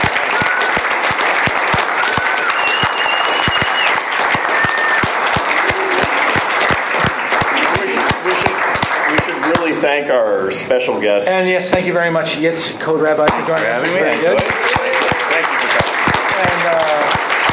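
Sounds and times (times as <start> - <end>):
audience applause: 0.0 - 9.9, 13.5 - 17.5
speech: 9.9 - 14.8.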